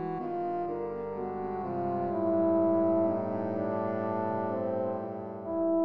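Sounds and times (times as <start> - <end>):
saxophone band playing: 0.2 - 5.7.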